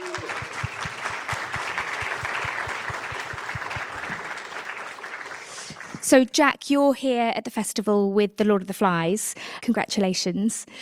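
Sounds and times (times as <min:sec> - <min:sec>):
festival audience applause welcoming playwright Jack Thorne: 0:00.0 - 0:06.1
speech: 0:06.1 - 0:10.8.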